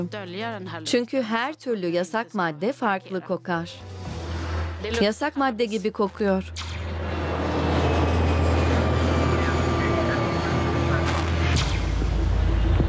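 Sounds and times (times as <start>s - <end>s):
speech: 0.0s - 4.1s, 4.8s - 6.7s
passenger airplane from Istanbul landing at Landvetter: 6.8s - 12.8s.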